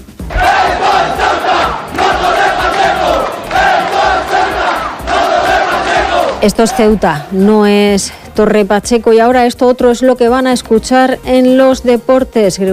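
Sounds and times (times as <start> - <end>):
crowd chanting at a far-right rally in Ceuta: 0.2 - 7.6
speech: 6.4 - 12.7.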